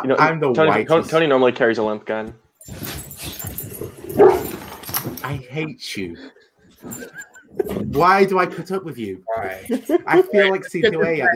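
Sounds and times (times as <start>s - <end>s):
speech: 0.0s - 2.8s, 4.2s - 11.3s
dog barking and yipping: 3.2s - 4.8s
laughter: 6.8s - 8.7s, 9.3s - 11.3s.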